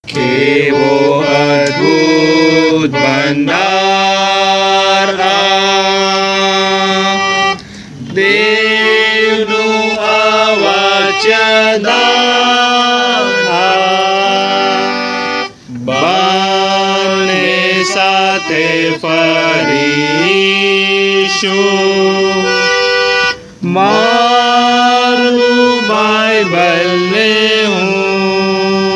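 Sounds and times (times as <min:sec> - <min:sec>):
traditional tune: 0:00.0 - 0:28.9.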